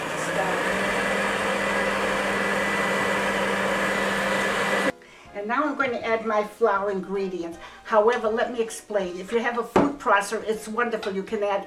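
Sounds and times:
electric mixer creaming sugar, shortening and eggs at medium-high speed: 0.0 - 4.9
speech: 5.5 - 11.6.

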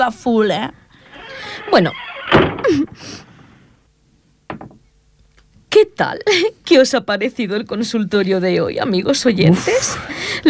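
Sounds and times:
speech: 0.0 - 0.8, 1.6 - 3.3, 5.7 - 10.4
door closing: 1.0 - 3.0.

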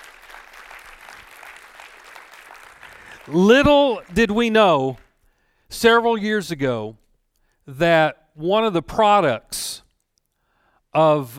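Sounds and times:
church audience applause: 0.0 - 5.1
speech: 3.3 - 5.0, 5.7 - 7.0, 7.7 - 9.7, 10.9 - 11.3.

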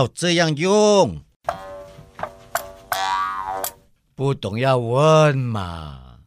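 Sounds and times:
speech: 0.0 - 1.3, 4.2 - 6.0
mouth harp being plucked: 2.6 - 3.8.

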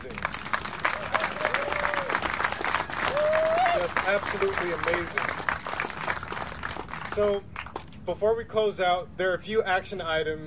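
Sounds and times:
audience applause: 0.0 - 8.0
speech: 4.0 - 5.4, 7.2 - 10.4.

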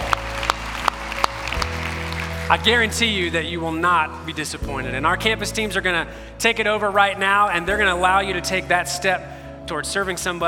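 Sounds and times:
audience clapping: 0.0 - 3.1
speech: 2.5 - 10.4.

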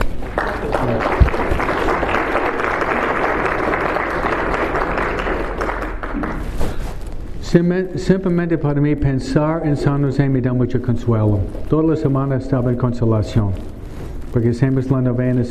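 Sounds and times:
audience applause: 0.0 - 6.6
speech: 7.6 - 13.7, 14.3 - 15.4.

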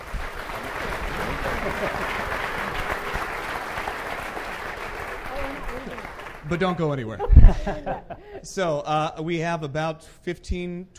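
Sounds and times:
audience applause: 0.0 - 7.0
laughter: 0.8 - 3.3, 6.6 - 8.5
speech: 6.5 - 10.9.

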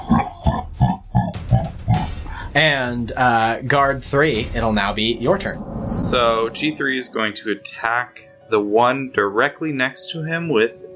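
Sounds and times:
deep guttural demonic chuckle: 0.1 - 2.0
speech: 2.6 - 10.9.

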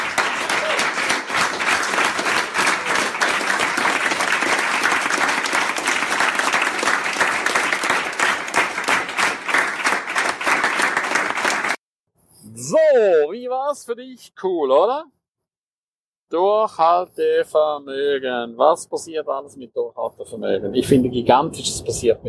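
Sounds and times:
applause from participants: 0.0 - 11.8
speech: 13.9 - 15.1, 16.3 - 22.2.

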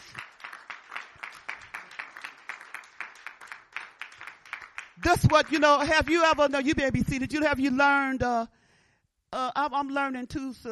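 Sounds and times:
audience clapping in rhythm: 0.0 - 6.5
speech: 5.0 - 8.6, 9.4 - 10.7.

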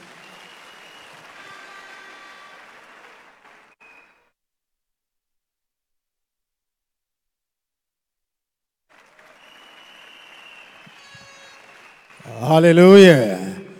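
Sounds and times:
crowd clapping: 0.0 - 4.2, 8.9 - 13.7
speech: 12.4 - 13.4.

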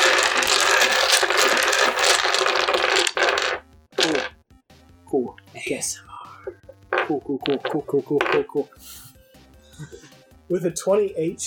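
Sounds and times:
dice rattling in a fan-made dice bag: 0.0 - 4.3, 6.9 - 8.6
speech: 5.7 - 6.1, 7.1 - 9.0, 9.8 - 11.4.

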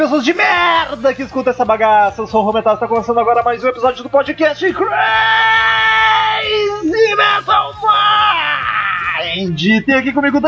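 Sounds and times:
speech: 0.0 - 5.8, 9.2 - 10.4
man screaming: 4.8 - 9.4.

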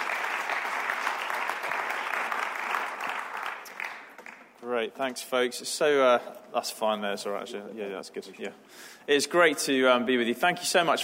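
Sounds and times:
audience applause: 0.0 - 4.5
speech: 4.8 - 11.0.

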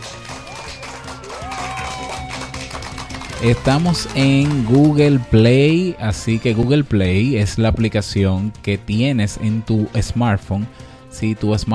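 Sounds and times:
cheering and whistling: 0.0 - 4.5
crowd applause: 0.0 - 5.4
speech: 3.4 - 11.7.

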